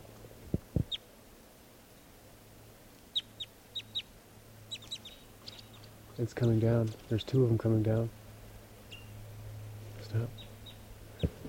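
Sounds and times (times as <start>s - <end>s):
wild bird chirping: 0.8s - 1.1s, 3.1s - 7.4s, 8.8s - 9.2s, 10.2s - 11.4s
speech: 6.2s - 8.2s.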